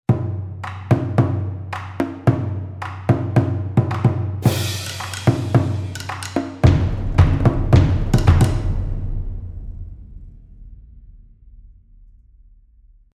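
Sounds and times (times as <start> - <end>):
percussion: 0.1 - 12.8.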